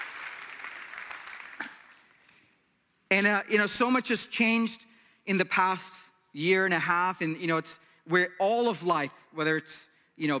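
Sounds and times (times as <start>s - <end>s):
faint audience applause at a packed church gathering: 0.0s - 2.4s
speech: 3.1s - 10.3s.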